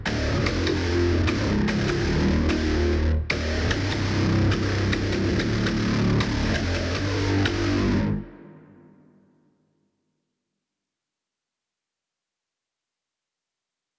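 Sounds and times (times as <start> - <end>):
basses: 0.0 - 8.7.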